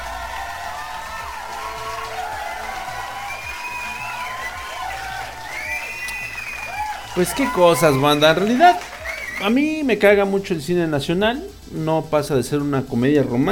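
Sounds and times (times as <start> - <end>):
whoops and rising shouts from many voices: 0.0 - 9.6
crowd applauding and cheering: 0.0 - 9.8
speech: 7.2 - 13.4.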